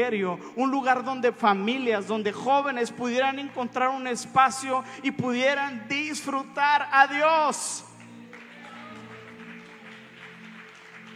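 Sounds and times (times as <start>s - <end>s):
speech: 0.0s - 7.9s
audience applause: 8.2s - 11.1s.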